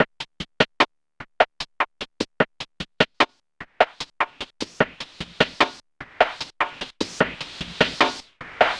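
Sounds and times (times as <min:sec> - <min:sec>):
drum groove: 0:00.0 - 0:08.7.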